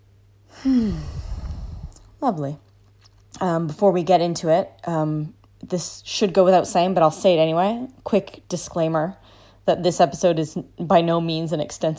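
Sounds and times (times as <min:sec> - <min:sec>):
deep breath with a voiced sigh: 0:00.5 - 0:02.1
speech: 0:00.6 - 0:01.1, 0:02.2 - 0:02.7, 0:03.4 - 0:11.9.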